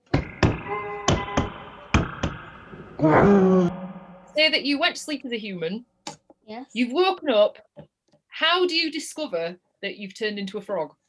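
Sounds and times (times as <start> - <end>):
dinosaur stomping sound effect: 0.0 - 3.6
speech: 3.0 - 3.5, 4.4 - 5.9, 6.5 - 11.0.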